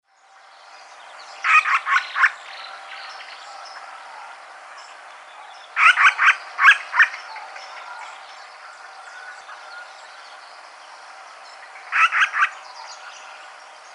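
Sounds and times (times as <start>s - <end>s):
pale-crested woodpecker harsh calls: 1.4s - 2.4s, 5.8s - 7.4s, 11.8s - 13.4s.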